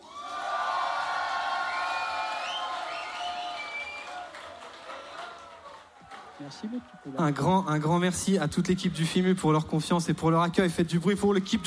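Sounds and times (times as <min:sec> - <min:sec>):
crowd whoops: 0:00.0 - 0:07.2
festival audience cheering and applauding for the sound engineer after a concert: 0:00.0 - 0:07.5
speech: 0:06.4 - 0:11.6.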